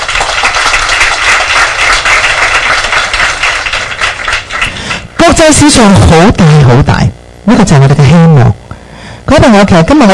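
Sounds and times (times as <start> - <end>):
audience applause: 0.0 - 5.1
speech: 5.4 - 8.6, 9.3 - 10.1.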